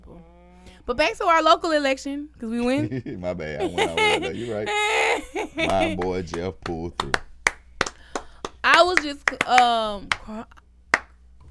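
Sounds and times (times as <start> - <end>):
speech: 0.8 - 7.3, 8.7 - 10.6
laughter: 2.8 - 6.5
slow hand claps from the audience: 5.6 - 10.3, 10.9 - 11.2.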